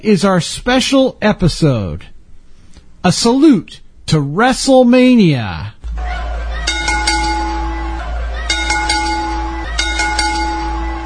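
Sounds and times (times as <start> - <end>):
speech: 0.0 - 2.1, 3.0 - 5.8
wrestling ring bell ringing: 6.2 - 11.0.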